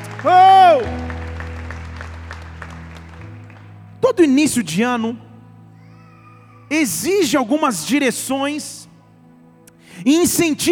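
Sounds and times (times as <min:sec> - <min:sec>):
audience applauding: 0:00.0 - 0:04.0
speech: 0:00.2 - 0:01.0, 0:04.1 - 0:05.3, 0:06.7 - 0:08.9, 0:10.0 - 0:10.7.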